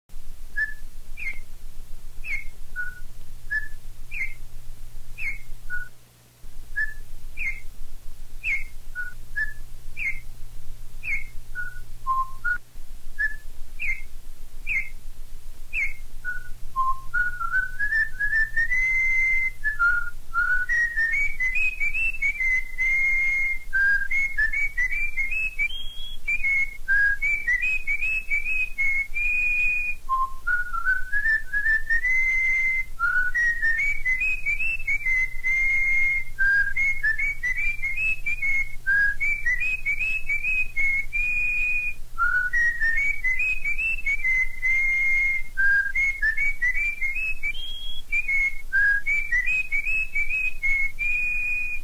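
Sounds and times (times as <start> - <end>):
corrupião bird singing: 0.6 - 1.5, 2.2 - 4.4, 5.2 - 5.9, 6.8 - 7.7, 8.4 - 10.3, 11.0 - 12.6, 13.2 - 15.0, 15.7 - 51.6.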